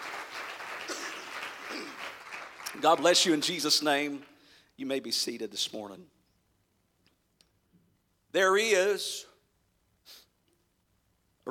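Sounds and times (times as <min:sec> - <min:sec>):
crowd clapping: 0:00.0 - 0:04.5
speech: 0:02.8 - 0:06.2, 0:08.3 - 0:09.3.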